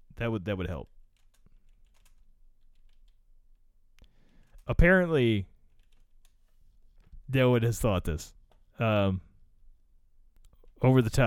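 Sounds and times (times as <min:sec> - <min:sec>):
speech: 0:00.2 - 0:01.0, 0:04.7 - 0:05.5, 0:07.3 - 0:09.3, 0:10.8 - 0:11.2
typing on a computer keyboard: 0:00.8 - 0:03.2, 0:05.6 - 0:06.4.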